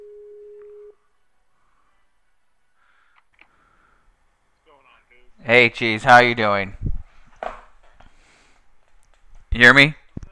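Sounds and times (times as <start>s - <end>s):
phone ringing tone on call: 0.0s - 1.0s
speech: 5.4s - 6.8s, 9.6s - 10.0s.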